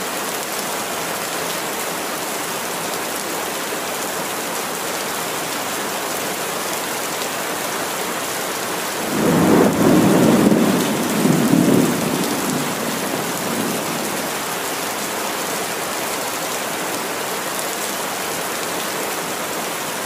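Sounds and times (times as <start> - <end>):
rain storm pouring down: 0.0 - 20.0
thunder rumbling: 9.0 - 14.4.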